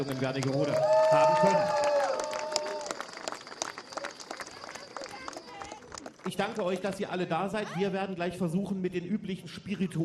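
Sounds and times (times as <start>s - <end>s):
speech: 0.0s - 1.9s, 6.3s - 10.0s
crowd applause: 0.0s - 7.0s.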